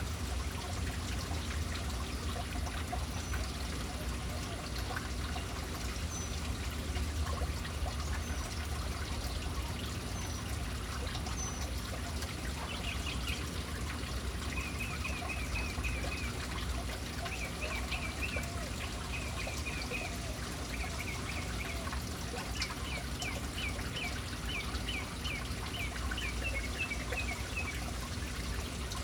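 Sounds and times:
fountain water splashing: 0.0s - 29.0s
birds chirping: 8.1s - 29.0s.

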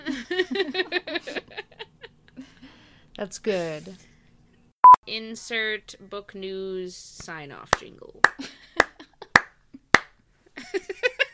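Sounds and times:
laughter: 0.0s - 2.7s, 10.6s - 11.3s
speech: 3.2s - 4.1s, 5.1s - 8.5s
person clapping: 7.7s - 10.2s.

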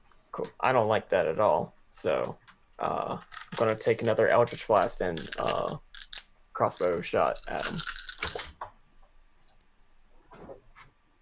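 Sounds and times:
speech: 0.4s - 5.9s, 6.6s - 8.4s
dice clattering during a tabletop role-playing game: 3.2s - 8.6s.

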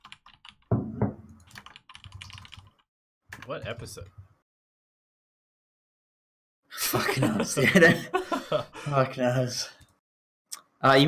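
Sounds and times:
typing on a computer keyboard: 0.0s - 0.7s, 1.4s - 3.5s
speech: 3.5s - 4.2s, 6.9s - 9.8s, 10.8s - 11.0s
laughter: 6.8s - 9.0s.

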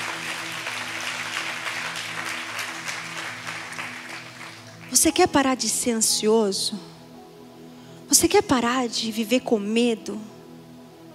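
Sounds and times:
audience applause: 0.0s - 5.0s
speech: 4.9s - 6.9s, 8.1s - 10.4s.

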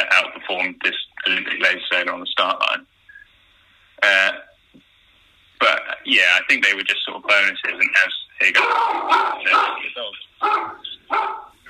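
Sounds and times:
speech: 0.6s - 2.9s, 6.1s - 11.4s
dog barking at a knock at the door: 8.6s - 11.6s.

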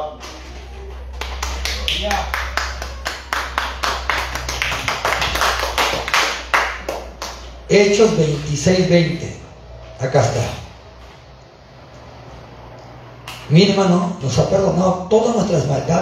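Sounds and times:
audience clapping in a steady rhythmic beat: 1.0s - 7.7s
speech: 2.0s - 2.4s, 7.7s - 9.4s, 10.0s - 10.6s, 13.5s - 15.9s.

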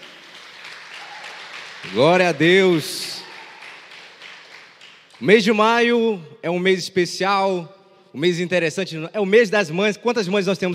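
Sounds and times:
audience applause: 0.0s - 5.2s
speech: 1.8s - 3.1s, 5.2s - 10.7s.

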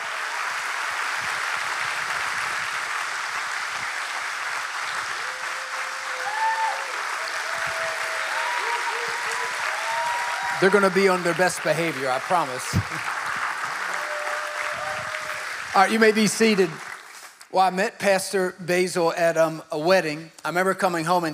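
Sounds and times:
audience applause: 0.0s - 17.5s
faint whistles and tonal cheers: 4.8s - 11.3s, 13.6s - 15.8s
speech: 10.6s - 13.2s, 15.8s - 16.9s, 17.5s - 21.3s.

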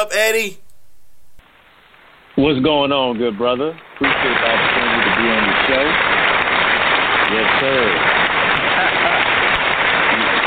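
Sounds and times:
speech: 0.0s - 0.6s, 2.4s - 4.6s, 5.2s - 6.2s, 7.3s - 8.3s
crowd clapping: 4.0s - 10.4s.

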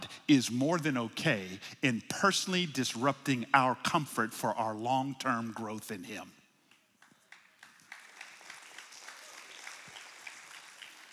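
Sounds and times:
speech: 0.3s - 6.4s
audience applause: 7.0s - 11.1s.

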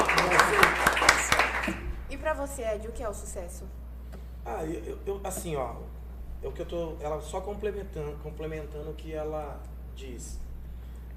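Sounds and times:
hand claps: 0.0s - 1.9s
speech: 2.4s - 3.8s, 4.4s - 10.4s.

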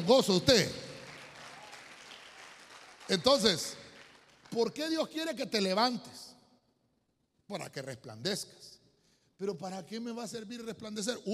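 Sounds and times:
speech: 0.0s - 0.8s, 3.1s - 3.8s, 4.5s - 6.3s, 7.5s - 8.7s, 9.4s - 11.3s
audience clapping: 0.0s - 5.0s.

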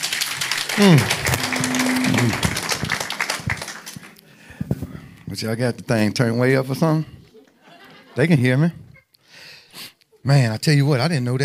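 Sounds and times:
audience applause: 0.0s - 4.4s
speech: 0.8s - 1.2s, 5.4s - 7.2s, 8.2s - 8.8s, 10.2s - 11.4s.

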